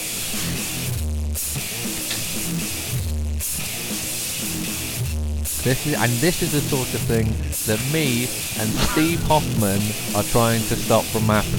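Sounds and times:
heavily compressed CD master of a loud band track: 0:00.0 - 0:11.5
speech: 0:05.6 - 0:11.5
laughter: 0:05.7 - 0:11.5.

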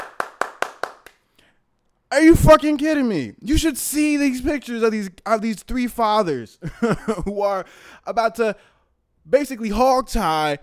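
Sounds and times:
round of applause: 0:00.0 - 0:01.2
speech: 0:02.1 - 0:10.6.

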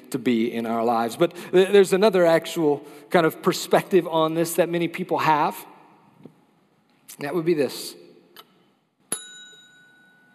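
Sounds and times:
speech: 0:00.1 - 0:05.7, 0:07.1 - 0:08.0
service bell ringing: 0:09.1 - 0:10.3.

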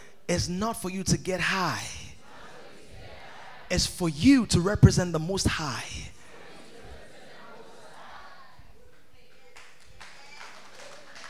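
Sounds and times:
speech: 0:00.3 - 0:01.9, 0:03.7 - 0:06.2
murmuring voices: 0:02.1 - 0:04.0, 0:06.0 - 0:11.2
audience clapping: 0:08.8 - 0:11.2.

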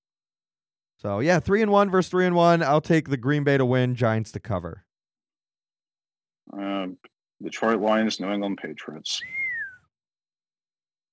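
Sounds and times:
speech: 0:01.0 - 0:04.8, 0:06.5 - 0:09.5
whistle: 0:09.1 - 0:09.9.

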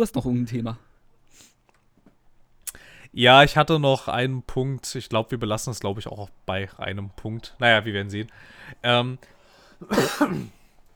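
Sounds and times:
speech: 0:00.0 - 0:01.5, 0:03.1 - 0:10.6
sneeze mixed with a cough: 0:09.8 - 0:10.7.

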